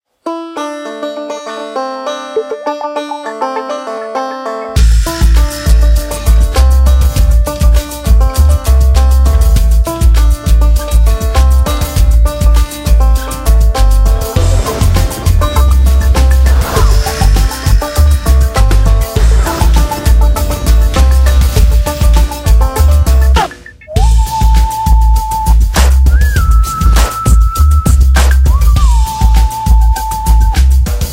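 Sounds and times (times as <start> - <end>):
instrumental music: 0.2 - 31.1.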